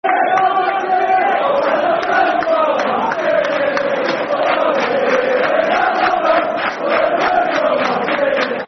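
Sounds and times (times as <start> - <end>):
football crowd chanting: 0.0 - 8.6.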